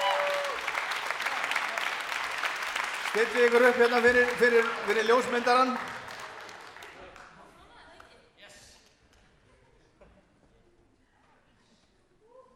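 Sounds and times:
audience applause: 0.0s - 7.6s
speech: 3.1s - 5.9s.

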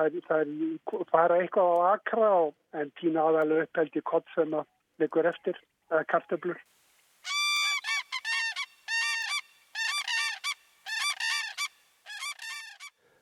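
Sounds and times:
speech: 0.0s - 6.8s
common cranes calling: 7.2s - 13.0s.

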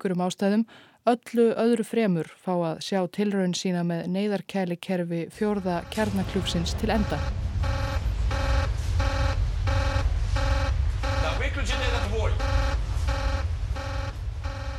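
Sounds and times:
speech: 0.0s - 7.4s
low rumble: 5.3s - 14.7s
alarm bells ringing: 5.5s - 14.7s.

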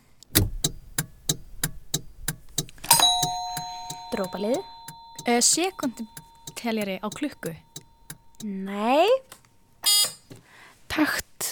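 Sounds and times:
car turn signal ticking: 0.0s - 8.5s
speech: 4.1s - 7.7s, 8.4s - 9.4s, 11.0s - 11.2s.

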